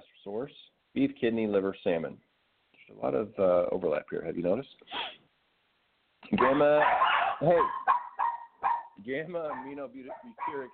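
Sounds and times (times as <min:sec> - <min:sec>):
speech: 0:00.2 - 0:02.3, 0:02.9 - 0:05.2, 0:06.3 - 0:07.9, 0:09.0 - 0:10.7
dogs barking excitedly: 0:06.4 - 0:10.7.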